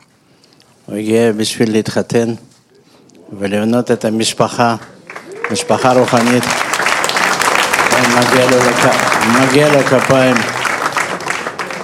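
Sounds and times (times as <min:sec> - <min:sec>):
speech: 0:00.9 - 0:02.5, 0:03.3 - 0:06.7, 0:08.1 - 0:10.6
audience applause: 0:04.7 - 0:11.8
voices calling out and cheering: 0:05.1 - 0:10.2.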